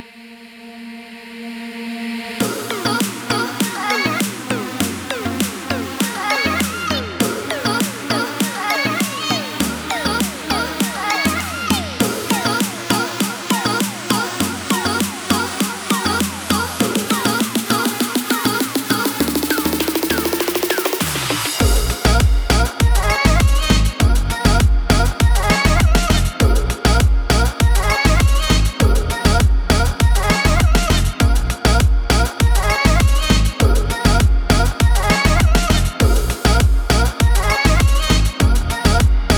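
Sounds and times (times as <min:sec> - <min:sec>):
reggaeton music: 0:01.3 - 0:39.3.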